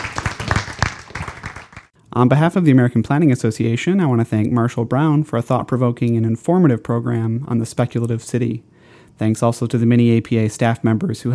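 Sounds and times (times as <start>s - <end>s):
audience applause: 0.0s - 1.9s
speech: 2.2s - 11.3s.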